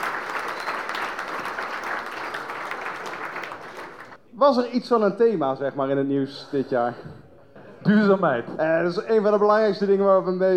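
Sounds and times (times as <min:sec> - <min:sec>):
audience applause: 0:00.0 - 0:04.2
speech: 0:04.4 - 0:07.2, 0:07.8 - 0:10.5.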